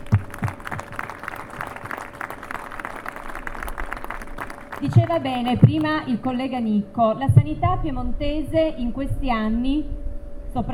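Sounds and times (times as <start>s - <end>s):
audience applause: 0.0s - 5.9s
speech: 4.8s - 10.7s.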